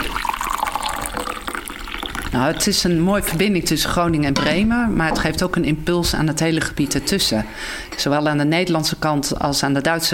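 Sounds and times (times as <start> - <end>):
coffee pouring into a cup: 0.0 - 2.9
speech: 2.3 - 10.1.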